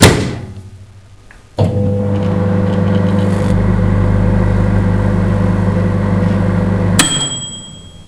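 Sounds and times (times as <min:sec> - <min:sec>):
microwave oven running: 0:01.6 - 0:08.0.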